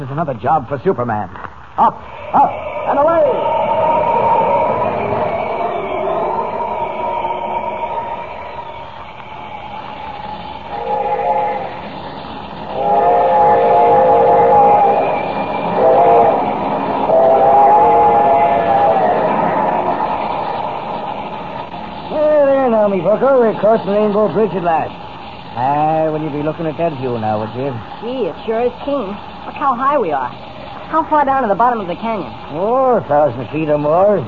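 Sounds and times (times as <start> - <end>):
speech: 0.0 - 3.4, 23.2 - 25.0, 25.6 - 34.2
train rumbling on tracks: 1.9 - 34.2
train whistle: 2.1 - 24.6.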